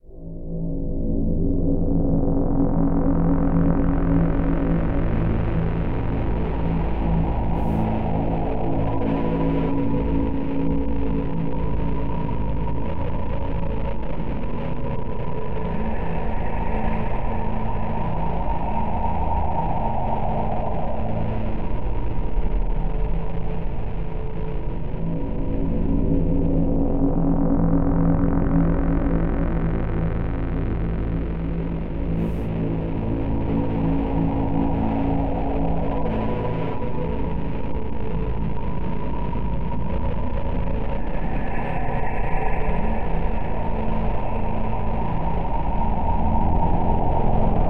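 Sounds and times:
ambient tension music: 0:00.1 - 0:47.6.

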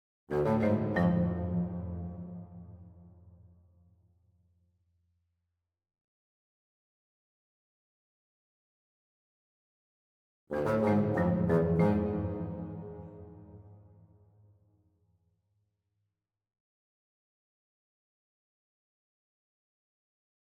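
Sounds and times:
cello: 0:00.3 - 0:02.9, 0:10.5 - 0:13.8
bassoon: 0:10.6 - 0:13.5.

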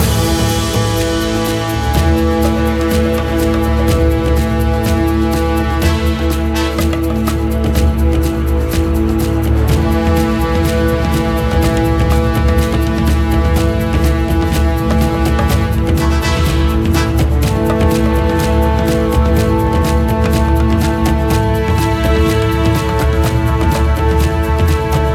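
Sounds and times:
tension music loop: 0:00.0 - 0:25.1.

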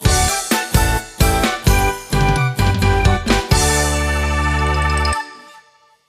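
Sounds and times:
music at an event: 0:00.0 - 0:06.0.

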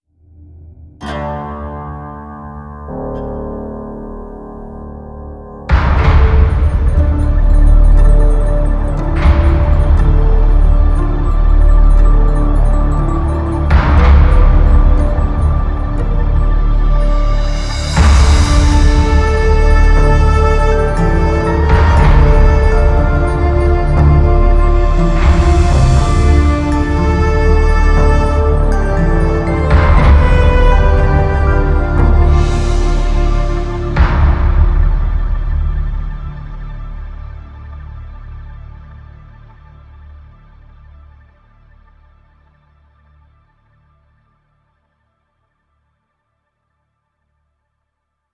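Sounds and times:
outro music: 0:05.5 - 0:38.3.

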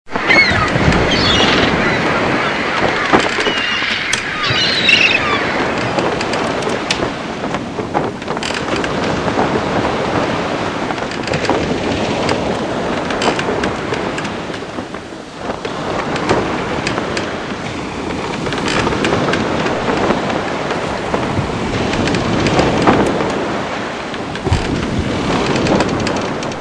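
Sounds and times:
pirate ship ambience: 0:00.1 - 0:26.5.

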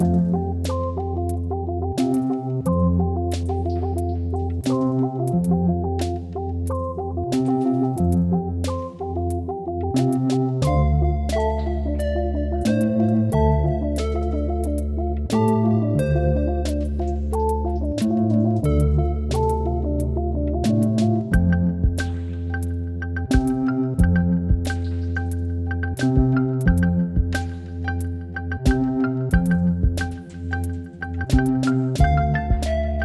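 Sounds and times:
speedy 180bpm music loop: 0:00.0 - 0:33.0.

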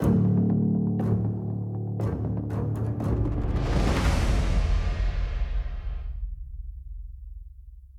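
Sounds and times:
action music intro at 120 bpm: 0:00.0 - 0:07.4.

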